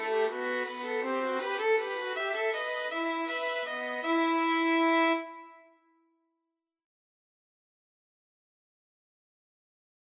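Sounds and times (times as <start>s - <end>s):
violin trio playing a bourree: 0.0s - 5.3s.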